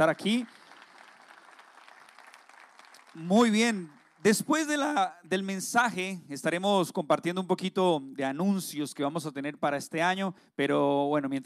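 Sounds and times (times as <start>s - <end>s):
speech: 0.0s - 0.6s, 3.2s - 11.4s
audience applause: 0.0s - 4.8s.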